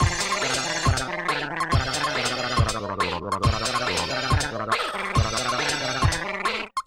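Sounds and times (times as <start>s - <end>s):
cartoon music: 0.0s - 6.8s.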